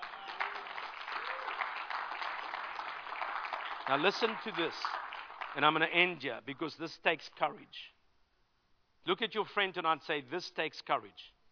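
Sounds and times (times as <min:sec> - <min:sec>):
audience applause: 0:00.0 - 0:05.9
speech: 0:03.9 - 0:08.0, 0:09.0 - 0:11.4.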